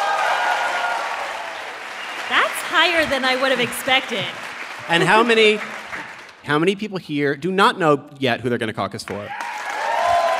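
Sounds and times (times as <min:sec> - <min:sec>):
audience applause: 0:00.0 - 0:06.4, 0:09.3 - 0:10.3
speech: 0:02.7 - 0:05.8, 0:06.4 - 0:09.4.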